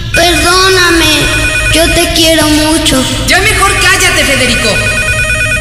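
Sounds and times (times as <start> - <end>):
telephone ringing: 0.2 - 2.6, 4.2 - 5.5
speech: 1.8 - 5.0.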